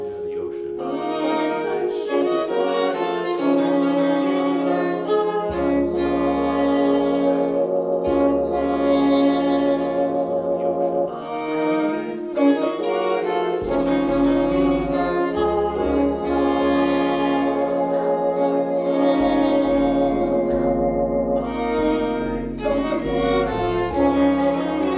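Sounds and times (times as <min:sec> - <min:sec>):
string noise: 0:00.0 - 0:24.9.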